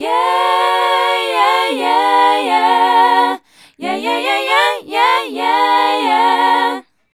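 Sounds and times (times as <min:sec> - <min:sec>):
female vocal group singing: 0:00.0 - 0:07.1.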